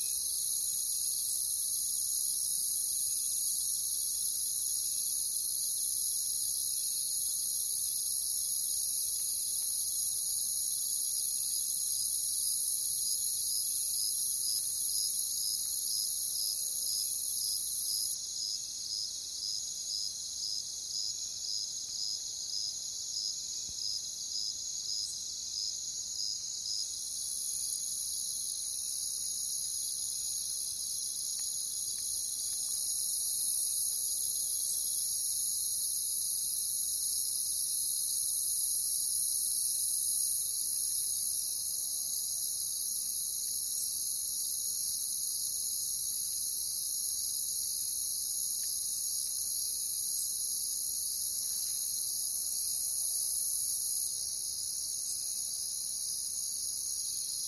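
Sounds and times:
crickets chirping: 0.0 - 57.4.

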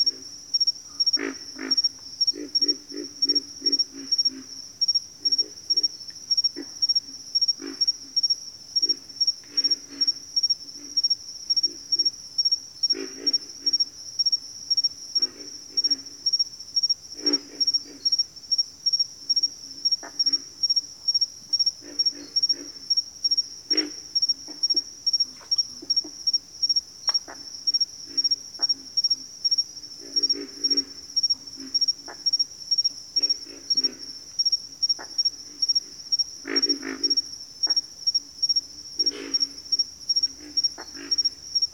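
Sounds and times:
constant high cricket chirping: 0.0 - 41.7
pig frog grunting: 1.0 - 12.1, 12.8 - 14.0, 14.8 - 16.4, 17.1 - 18.2, 21.6 - 37.9, 38.5 - 41.7.

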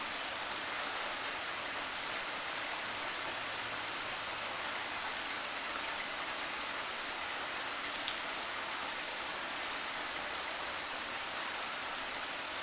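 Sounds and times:
rain: 0.0 - 12.6.

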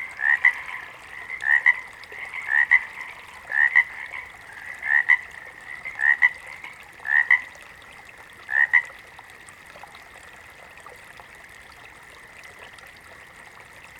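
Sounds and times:
water frog croaking: 0.0 - 7.5, 8.5 - 8.9.

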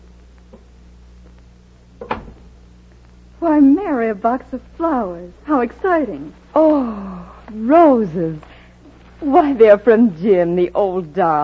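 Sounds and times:
front door opening: 2.0 - 2.6
speech: 3.5 - 8.5, 9.2 - 11.4.

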